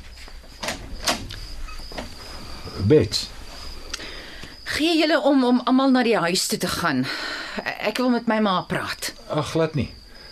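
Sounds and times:
door latch and handle clicking as a door is opened: 0.6 - 2.1
speech: 2.8 - 3.4, 4.8 - 10.0.

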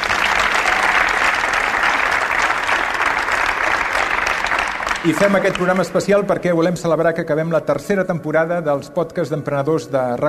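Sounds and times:
audience applause: 0.0 - 6.3
speech: 5.0 - 10.2.

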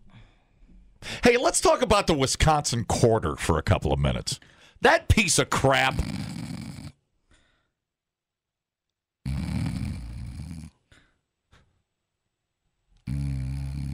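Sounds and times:
speech: 1.2 - 6.4
snoring during a nap: 5.9 - 7.0, 9.2 - 10.8, 13.0 - 13.9.

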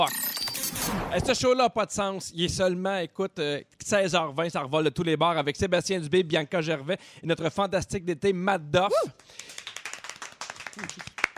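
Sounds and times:
speech: 0.0 - 0.2, 0.8 - 9.5
audience applause: 9.4 - 11.3.

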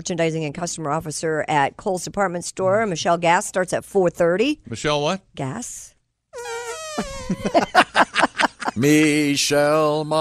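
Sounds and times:
speech: 0.0 - 10.2
two people making fart noises with mouths: 6.3 - 7.7
laughter: 7.0 - 9.2.

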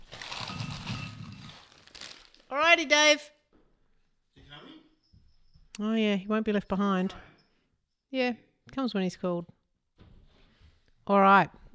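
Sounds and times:
plastic snack packet rustling: 0.0 - 2.5
speech: 2.5 - 3.4, 5.8 - 7.3, 8.1 - 9.6, 11.1 - 11.7.

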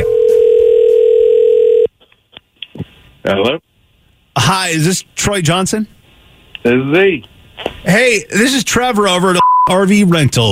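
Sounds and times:
telephone call ring tone: 0.0 - 1.9
speech: 3.3 - 3.7, 4.4 - 6.0, 6.6 - 10.5.

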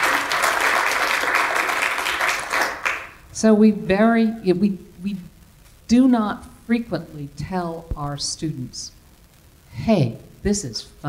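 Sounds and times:
audience applause: 0.0 - 3.2
speech: 3.4 - 5.3, 5.9 - 9.0, 9.7 - 11.0.

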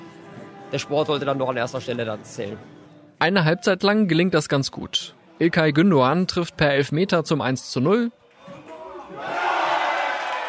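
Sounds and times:
speech: 0.7 - 8.2
football crowd cheering: 8.2 - 10.4.

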